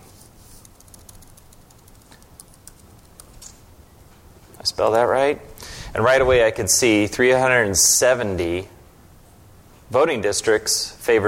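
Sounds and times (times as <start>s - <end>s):
low steady hiss: 0.0s - 11.2s
soft typing on a computer keyboard: 0.6s - 3.6s
speech: 4.8s - 8.8s, 9.9s - 11.2s.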